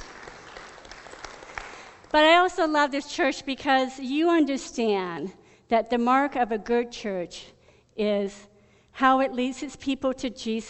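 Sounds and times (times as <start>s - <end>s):
audience applause: 0.0s - 2.1s
speech: 2.1s - 10.6s.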